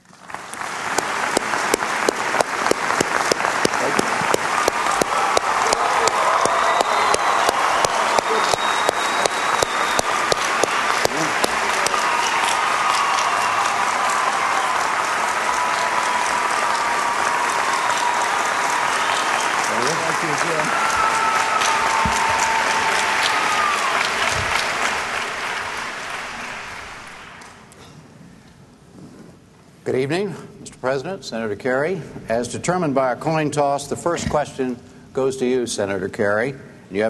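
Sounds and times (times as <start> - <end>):
debate hall audience applause welcoming President Bush and Senator Kerry: 0.0 - 27.6
speech: 31.0 - 37.0.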